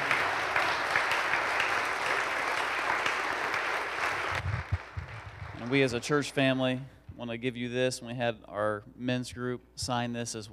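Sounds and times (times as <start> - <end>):
audience applause: 0.0 - 6.4
speech: 5.7 - 10.5.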